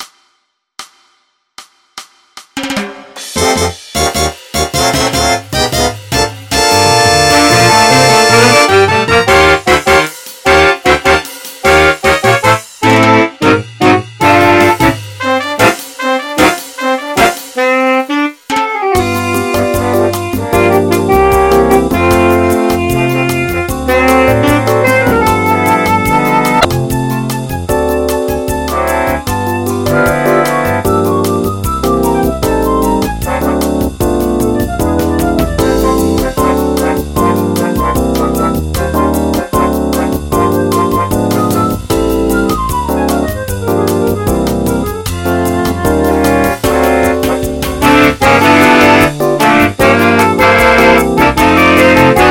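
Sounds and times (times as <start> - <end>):
jazz music: 2.6 - 52.3.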